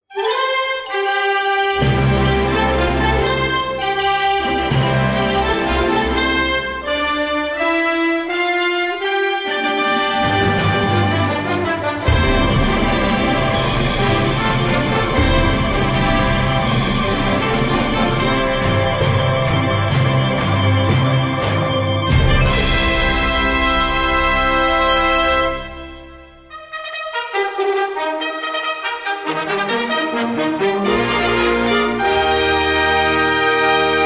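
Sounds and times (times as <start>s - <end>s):
fanfare: 0.0s - 34.0s.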